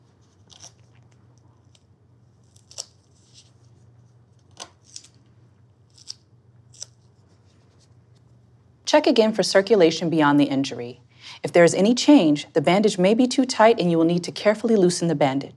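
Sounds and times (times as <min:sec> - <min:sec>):
medical tape ripping to secure a wound dressing: 0:00.2 - 0:08.3
speech: 0:08.9 - 0:15.5.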